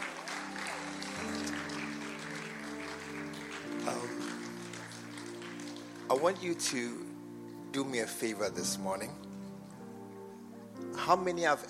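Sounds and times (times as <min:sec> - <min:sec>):
audience applause: 0:00.0 - 0:06.8
speech: 0:06.1 - 0:07.1, 0:07.7 - 0:09.3, 0:11.0 - 0:11.6.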